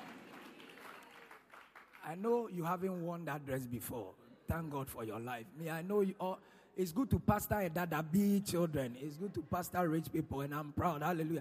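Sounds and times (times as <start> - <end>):
audience clapping: 0.0 - 2.2
speech: 2.0 - 11.3.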